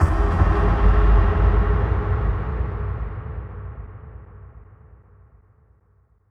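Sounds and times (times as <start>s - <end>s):
impact: 0.0s - 4.0s.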